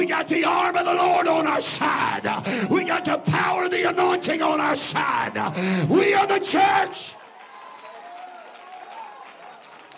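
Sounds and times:
speech: 0.0 - 7.2
audience clapping: 6.8 - 9.9.

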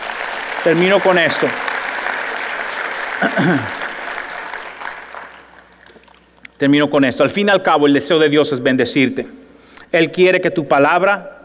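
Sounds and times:
audience applause: 0.0 - 6.2
speech: 0.6 - 1.7, 3.2 - 3.8, 6.6 - 11.4.

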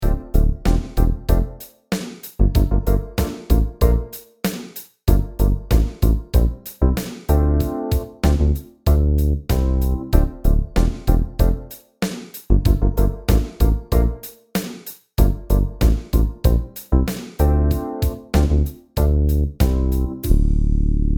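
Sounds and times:
funk disco sub bass: 0.0 - 1.5, 2.4 - 4.0, 5.1 - 11.7, 12.5 - 14.2, 15.2 - 21.1.

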